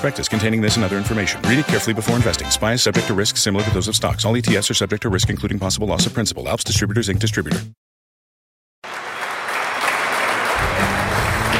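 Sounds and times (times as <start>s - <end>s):
speech: 0.0s - 7.8s
applause and cheering: 8.8s - 11.5s.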